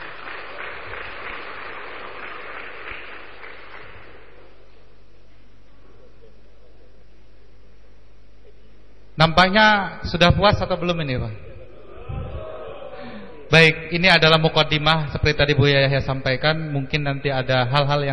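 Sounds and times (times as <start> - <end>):
seminar audience applause for the speakers: 0.0 - 4.8
speech: 9.2 - 11.5, 13.5 - 18.1.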